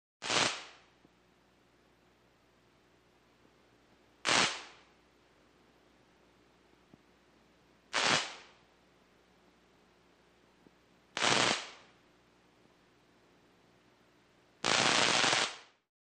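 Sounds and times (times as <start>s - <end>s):
medium-pitched zaps: 0.2s - 0.9s, 4.2s - 4.9s, 7.9s - 8.6s, 11.2s - 11.9s, 14.6s - 15.8s.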